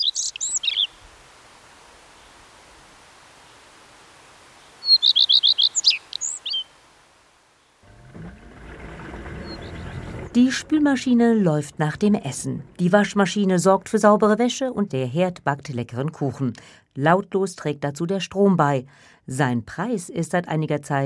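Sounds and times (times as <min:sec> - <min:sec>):
common redstart singing: 0:00.0 - 0:01.0, 0:04.8 - 0:06.8, 0:09.4 - 0:13.6
speech: 0:10.4 - 0:21.0.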